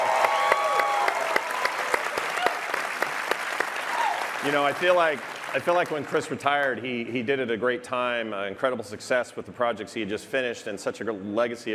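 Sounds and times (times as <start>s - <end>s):
audience applause: 0.0s - 6.5s
speech: 4.4s - 11.7s.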